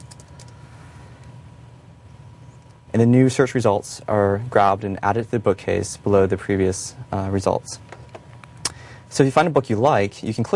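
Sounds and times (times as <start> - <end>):
typing a search term on a computer keyboard: 0.0 - 0.5
speech: 3.0 - 8.0, 9.2 - 10.5.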